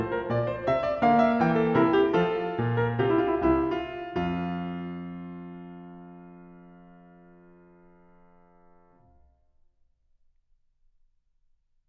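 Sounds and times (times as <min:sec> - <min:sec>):
keyboard fugue in F major: 0:00.0 - 0:09.0.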